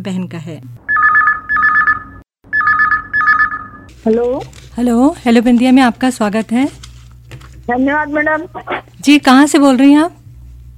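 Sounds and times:
speech: 0:00.0 - 0:00.8, 0:04.0 - 0:06.8, 0:07.7 - 0:10.2
telephone ringing: 0:00.9 - 0:03.9.

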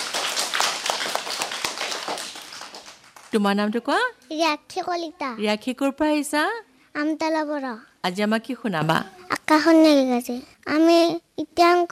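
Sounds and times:
group of people clapping hands loudly: 0:00.0 - 0:03.5
speech: 0:03.3 - 0:11.9.

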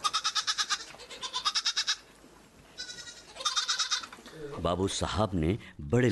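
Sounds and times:
goat bleating: 0:00.0 - 0:02.1, 0:02.8 - 0:04.3
speech: 0:04.6 - 0:06.1.

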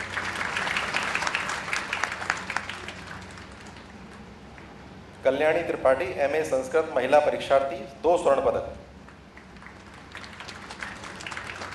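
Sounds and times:
applause: 0:00.0 - 0:04.7, 0:09.0 - 0:11.7
speech: 0:05.2 - 0:08.8.

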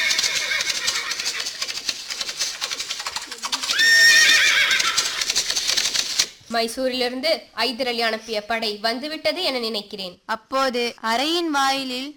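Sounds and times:
horses neighing: 0:00.0 - 0:01.8, 0:03.3 - 0:05.5
hooves clattering: 0:00.0 - 0:06.3
speech: 0:06.5 - 0:12.1.

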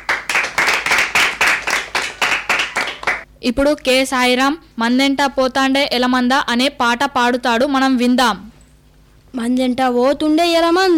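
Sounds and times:
audience clapping rhythmically after a story: 0:00.0 - 0:03.3
speech: 0:03.4 - 0:08.5, 0:09.3 - 0:10.9.

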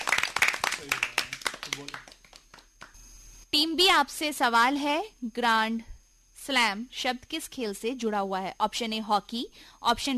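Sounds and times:
group clapping for a team: 0:00.0 - 0:03.0
speech: 0:00.8 - 0:01.0, 0:01.7 - 0:02.1, 0:03.5 - 0:10.1.

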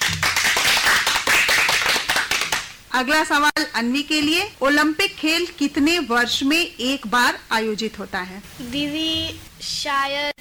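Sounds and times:
audience clapping at a children's quiz show: 0:00.0 - 0:02.8
speech: 0:03.0 - 0:10.4.

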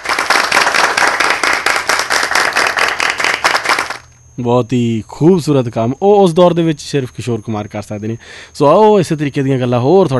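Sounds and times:
applause in tribute to a singer: 0:00.0 - 0:04.0
speech: 0:04.4 - 0:10.1.

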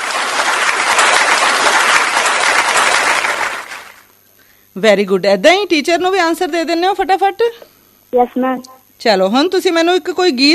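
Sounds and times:
applause for children: 0:00.0 - 0:04.1
speech: 0:04.8 - 0:10.5.

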